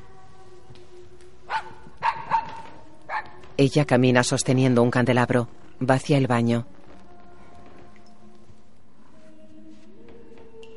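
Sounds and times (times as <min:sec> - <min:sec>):
dog yipping while bringing a ball: 0:01.5 - 0:03.4
speech: 0:03.6 - 0:06.8.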